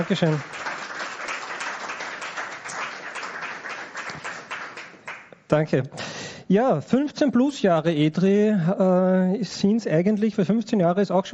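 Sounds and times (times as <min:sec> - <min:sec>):
speech: 0:00.0 - 0:00.7, 0:05.5 - 0:11.3
audience applause: 0:00.0 - 0:05.3.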